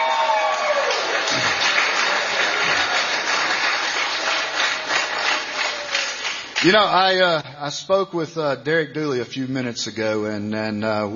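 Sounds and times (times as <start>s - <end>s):
crowd applause: 0.0s - 7.0s
speech: 6.6s - 11.1s.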